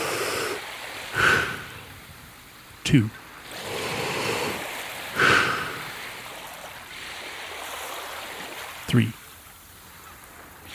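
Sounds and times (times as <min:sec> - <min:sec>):
deep inhale during a guided breathing exercise: 0:00.0 - 0:00.6, 0:01.2 - 0:01.8, 0:05.2 - 0:06.0
speech: 0:02.9 - 0:03.2, 0:09.0 - 0:09.2.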